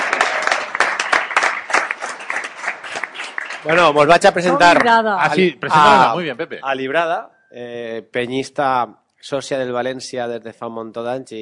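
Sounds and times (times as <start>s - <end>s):
audience applause: 0.0s - 4.9s
speech: 3.6s - 11.4s.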